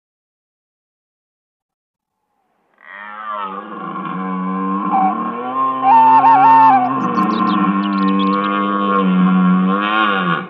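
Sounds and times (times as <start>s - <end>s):
red deer roaring: 2.8s - 10.4s.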